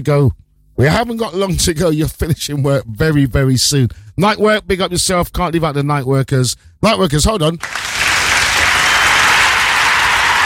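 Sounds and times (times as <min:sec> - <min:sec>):
speech: 0:00.0 - 0:08.0
round of applause for night workers: 0:07.6 - 0:10.4.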